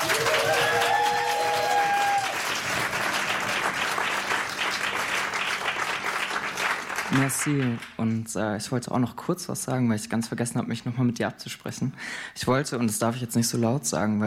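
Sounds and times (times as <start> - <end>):
audience applause at live concert: 0.0 - 8.0
speech: 7.1 - 14.2.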